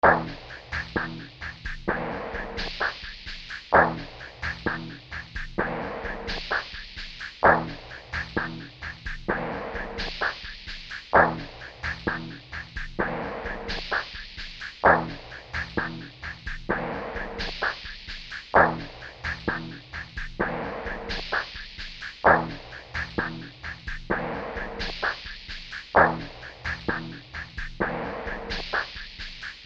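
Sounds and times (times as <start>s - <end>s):
music: 0.0s - 29.6s.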